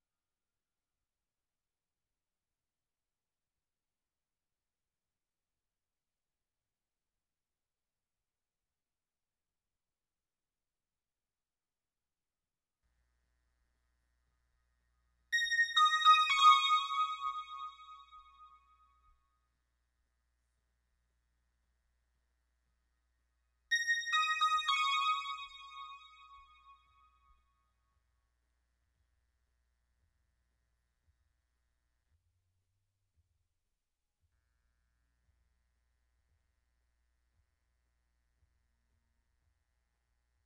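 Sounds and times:
synth bells: 0:15.4 - 0:18.6, 0:23.7 - 0:26.7.

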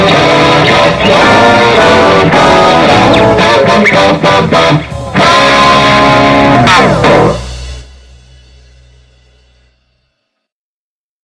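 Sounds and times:
guitar: 0:00.0 - 0:08.2.

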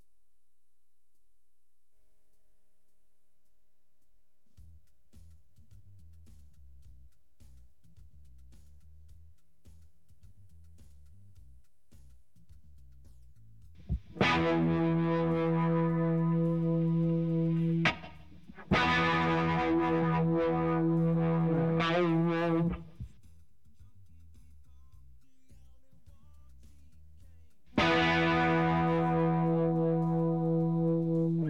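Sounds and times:
guitar: 0:13.8 - 0:23.3, 0:27.4 - 0:31.4.

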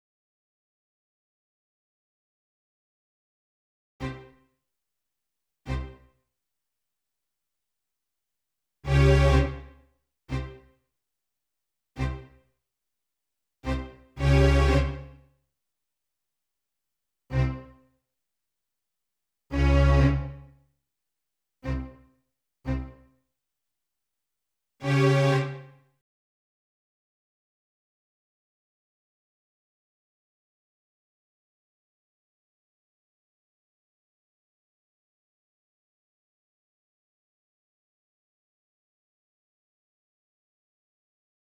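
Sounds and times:
strings: 0:04.0 - 0:04.4, 0:05.7 - 0:06.1, 0:08.9 - 0:10.7, 0:12.0 - 0:12.4, 0:13.6 - 0:15.2, 0:17.3 - 0:17.8, 0:19.5 - 0:20.5, 0:21.6 - 0:22.0, 0:22.7 - 0:23.0, 0:24.8 - 0:25.7.

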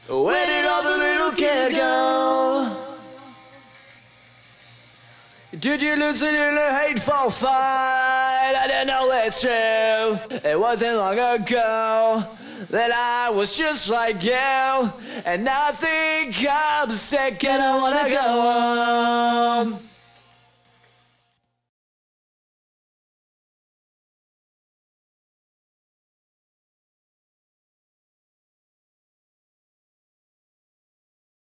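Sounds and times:
person singing: 0:00.0 - 0:03.8, 0:05.6 - 0:19.9.

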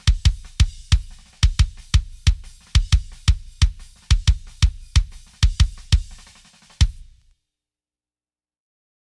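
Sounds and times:
kick drum: 0:00.0 - 0:07.2.

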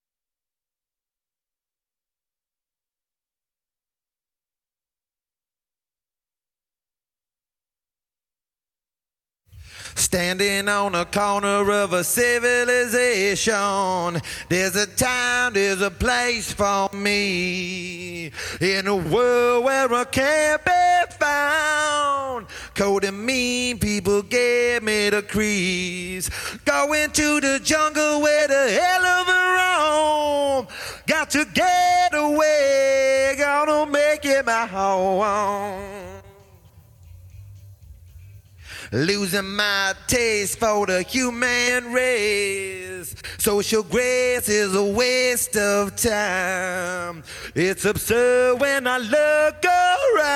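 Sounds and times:
person singing: 0:09.9 - 0:36.8, 0:38.8 - 0:50.3.

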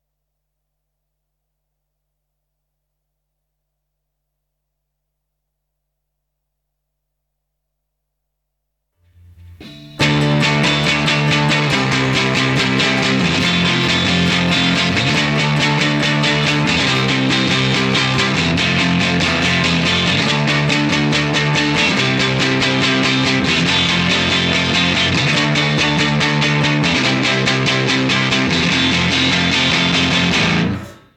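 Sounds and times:
guitar: 0:09.0 - 0:31.1.

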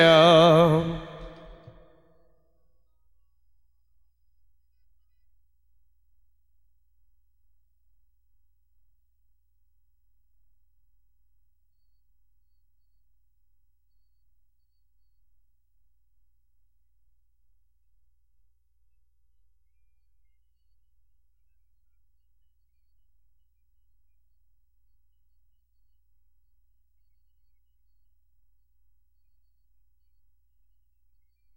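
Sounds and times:
person singing: 0:00.0 - 0:01.8.

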